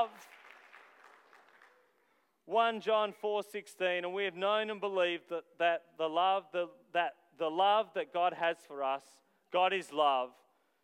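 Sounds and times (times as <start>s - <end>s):
speech: 0.0s - 0.4s, 2.5s - 10.4s
audience applause: 0.0s - 1.9s.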